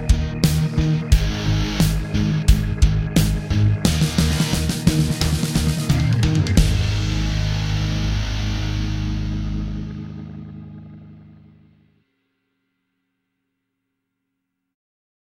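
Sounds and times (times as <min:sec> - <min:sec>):
rock music: 0:00.0 - 0:11.8.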